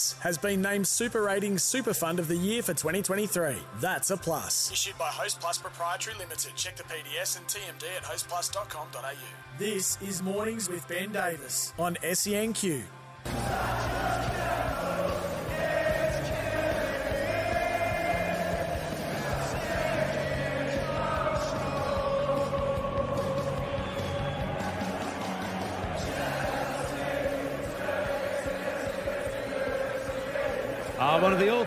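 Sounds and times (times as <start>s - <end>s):
speech: 0.0s - 14.9s, 31.2s - 31.6s
darts crowd at Blackpool singing along in arena: 13.3s - 31.6s.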